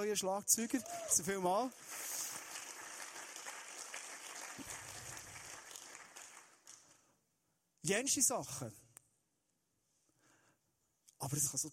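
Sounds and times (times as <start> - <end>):
speech: 0.0 - 2.2, 7.8 - 8.8, 11.2 - 11.7
audience applauding the new drummer: 1.1 - 7.0.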